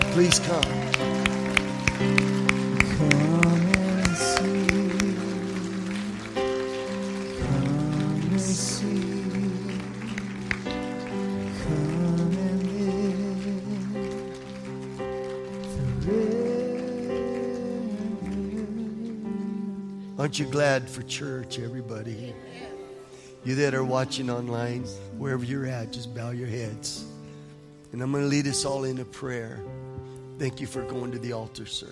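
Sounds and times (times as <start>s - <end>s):
audience clapping: 0.0s - 19.6s
speech: 0.2s - 1.1s, 20.3s - 22.6s, 23.4s - 27.1s, 27.9s - 29.8s, 30.4s - 31.9s.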